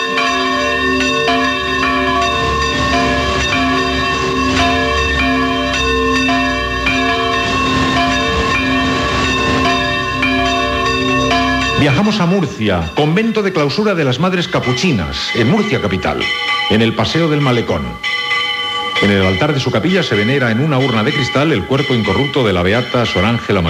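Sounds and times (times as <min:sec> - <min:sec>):
bells of the Capilla del Cristo de las Cadenas in Oviedo ringing: 0:00.0 - 0:23.6
speech: 0:11.8 - 0:18.3, 0:19.0 - 0:23.6.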